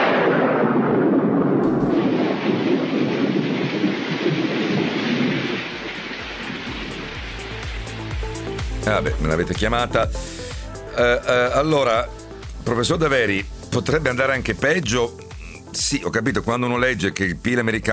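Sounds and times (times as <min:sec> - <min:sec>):
deep rolling thunder: 0:00.0 - 0:08.6
heavy steady rain pouring: 0:00.0 - 0:09.4, 0:10.1 - 0:12.6
speech: 0:08.9 - 0:10.4, 0:11.0 - 0:17.9.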